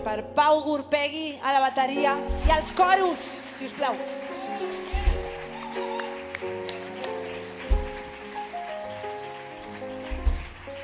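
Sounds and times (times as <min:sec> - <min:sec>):
speech: 0:00.0 - 0:04.8
audience applause: 0:02.6 - 0:10.8.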